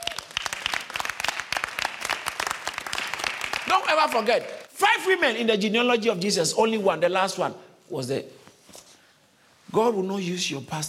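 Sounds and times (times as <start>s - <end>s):
audience clapping: 0.0s - 4.7s
speech: 3.7s - 8.4s, 9.7s - 10.8s.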